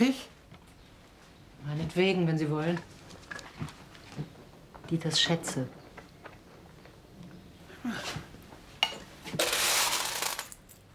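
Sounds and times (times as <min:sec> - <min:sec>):
speech: 0:01.9 - 0:03.0, 0:04.9 - 0:05.8, 0:07.8 - 0:08.2
old Roman coins being handled: 0:09.5 - 0:10.9.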